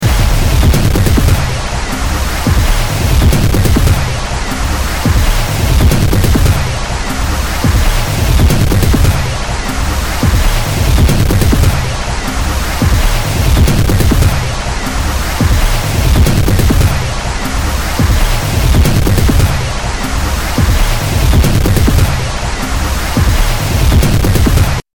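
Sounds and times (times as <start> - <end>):
music loop: 0.0 - 24.8.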